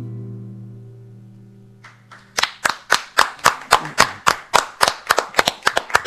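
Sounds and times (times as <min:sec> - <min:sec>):
small audience applause: 0:01.9 - 0:06.0.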